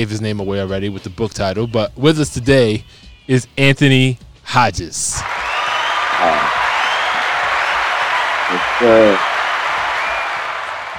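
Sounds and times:
speech: 0:00.0 - 0:05.4, 0:06.2 - 0:06.6, 0:08.5 - 0:09.3
audience applause: 0:05.2 - 0:10.9.

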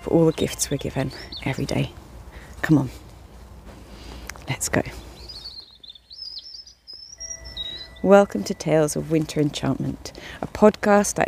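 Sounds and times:
European Robin song: 0:00.0 - 0:02.0, 0:05.0 - 0:09.2
speech: 0:00.0 - 0:02.0, 0:02.6 - 0:03.0, 0:04.5 - 0:05.0, 0:08.0 - 0:11.2.

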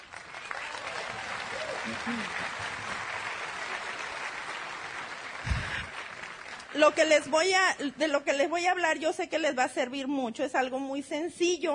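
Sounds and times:
crowd applause: 0:00.0 - 0:07.8
speech: 0:01.9 - 0:02.8, 0:06.8 - 0:11.7.

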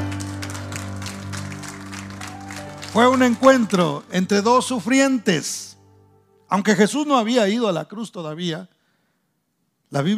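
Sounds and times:
audience applause: 0:00.0 - 0:04.1
sustained low hum of an organ or keyboard chord: 0:00.0 - 0:06.9
speech: 0:02.9 - 0:05.8, 0:06.5 - 0:08.8, 0:09.9 - 0:10.1.

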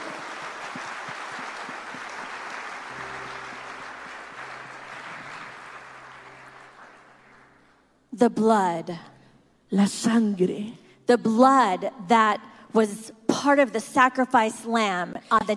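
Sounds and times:
audience applause: 0:00.0 - 0:07.5
speech: 0:08.2 - 0:09.1, 0:09.7 - 0:15.5.

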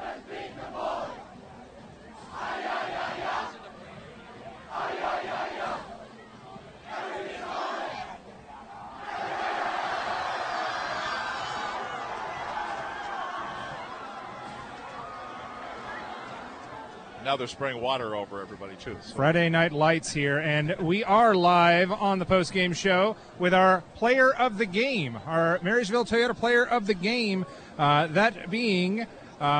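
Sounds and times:
football team chanting after a win: 0:00.0 - 0:01.2, 0:02.2 - 0:03.6, 0:04.7 - 0:06.0, 0:06.8 - 0:11.0
football team cheering and shouting after a win: 0:02.2 - 0:03.8, 0:04.6 - 0:17.2
speech: 0:17.3 - 0:29.5.

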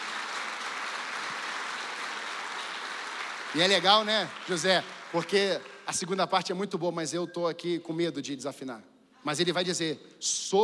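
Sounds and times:
audience applause: 0:00.0 - 0:06.2
speech: 0:03.5 - 0:10.6.

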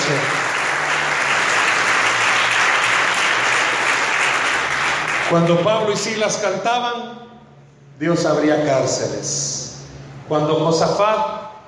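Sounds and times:
audience applause: 0:00.0 - 0:05.4
speech: 0:00.1 - 0:00.4, 0:05.3 - 0:07.3, 0:08.0 - 0:09.7, 0:10.3 - 0:11.6.

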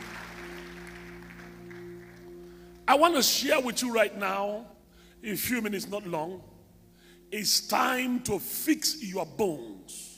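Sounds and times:
audience clapping hands: 0:00.0 - 0:02.9
speech: 0:02.9 - 0:06.5, 0:07.3 - 0:10.1.

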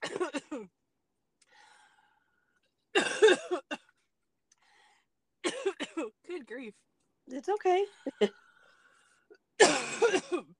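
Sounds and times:
harsh coughing fit: 0:00.0 - 0:00.7, 0:02.9 - 0:04.0, 0:05.4 - 0:06.2, 0:09.6 - 0:10.5
speech: 0:06.7 - 0:08.4.

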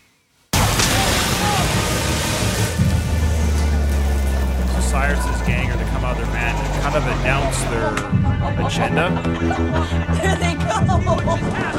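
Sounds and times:
explosion: 0:00.6 - 0:03.4
laughter: 0:04.7 - 0:11.7
speech: 0:05.0 - 0:11.7.

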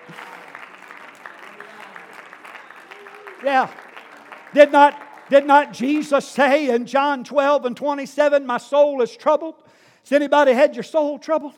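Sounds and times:
audience clapping hands: 0:00.0 - 0:06.7
speech: 0:03.4 - 0:03.8, 0:04.5 - 0:11.5.

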